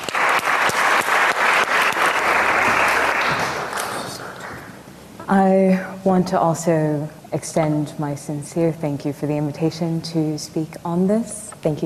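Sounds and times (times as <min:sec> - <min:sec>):
audience applause welcoming a speaker to a lecture: 0:00.0 - 0:04.8
speech: 0:05.3 - 0:11.8.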